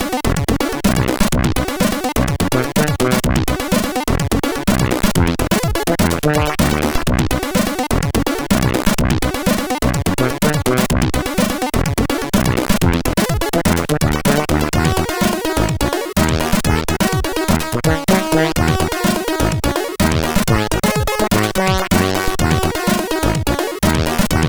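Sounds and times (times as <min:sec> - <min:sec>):
SID chip funk music on CSG 8580R5: 0:00.0 - 0:24.4.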